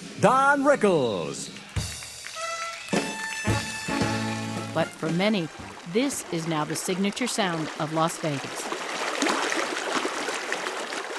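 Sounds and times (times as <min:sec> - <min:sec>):
speech: 0:00.2 - 0:01.6, 0:04.8 - 0:08.7
rushing water: 0:02.2 - 0:11.1.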